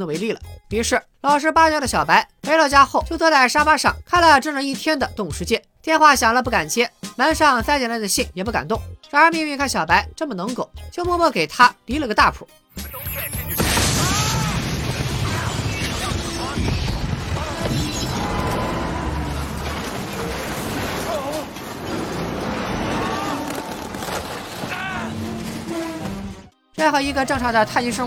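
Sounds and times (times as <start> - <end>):
speech: 0.0 - 13.7, 26.8 - 28.0
glass smashing and debris tumbling: 12.8 - 18.3, 19.1 - 26.0
excavator smashing through a house window: 13.1 - 26.5
rumbling booms: 13.6 - 25.4.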